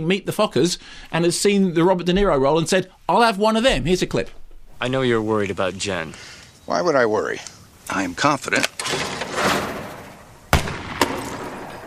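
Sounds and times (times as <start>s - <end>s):
speech: 0.0s - 8.8s
gunshots in a comedy film scene: 8.8s - 11.8s.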